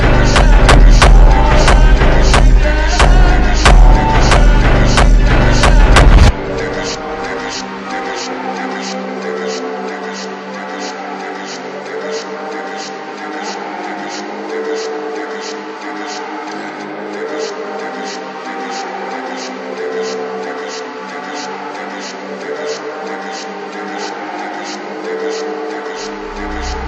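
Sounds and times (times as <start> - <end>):
slowed funk music: 0.0 - 7.5.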